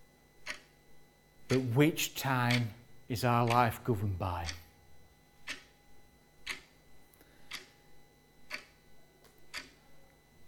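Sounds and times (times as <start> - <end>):
clock ticking: 0.4 - 0.7, 1.4 - 1.8, 2.4 - 2.7, 3.4 - 4.6, 5.4 - 5.7, 6.4 - 6.7, 7.5 - 7.8, 8.4 - 8.8, 9.4 - 9.8
speech: 1.5 - 4.6.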